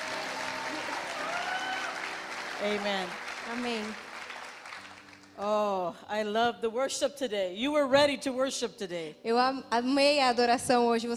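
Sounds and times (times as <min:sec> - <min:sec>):
audience applause: 0:00.0 - 0:05.4
speech: 0:02.6 - 0:04.1, 0:05.4 - 0:11.1.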